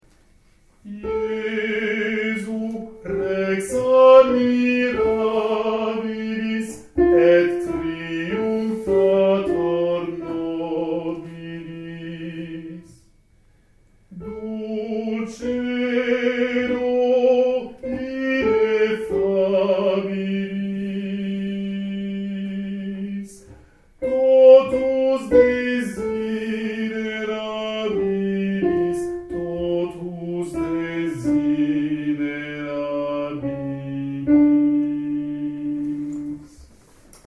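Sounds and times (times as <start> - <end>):
sopranos singing: 0.8 - 13.0, 14.1 - 37.2.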